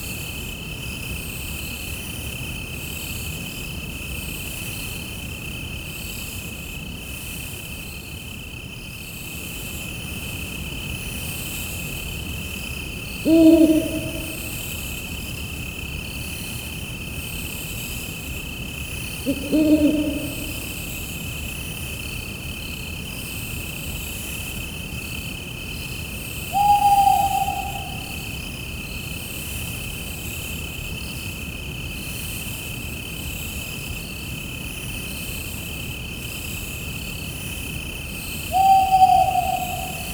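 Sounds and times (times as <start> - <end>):
crickets chirping: 10.2 - 34.4, 35.0 - 40.1.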